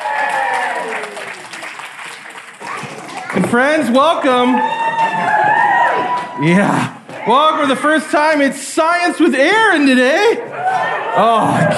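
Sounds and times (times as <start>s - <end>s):
audience applause welcoming a guest onto a show: 0.0s - 6.4s
speech: 3.4s - 5.3s, 6.4s - 10.5s, 11.2s - 11.7s
laughter: 10.0s - 11.7s.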